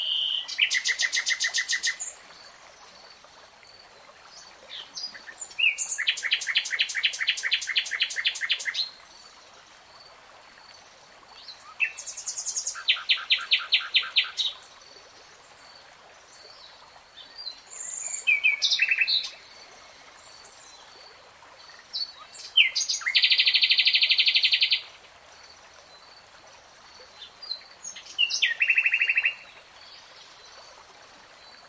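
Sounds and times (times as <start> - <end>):
nightingale song: 0.0 - 2.2, 4.7 - 9.0, 11.4 - 14.6, 17.2 - 20.9, 21.7 - 25.0, 27.2 - 30.2.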